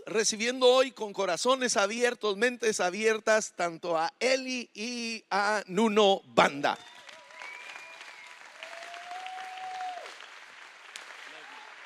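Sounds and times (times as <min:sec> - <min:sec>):
speech: 0:00.1 - 0:06.9
audience applause: 0:06.8 - 0:11.8.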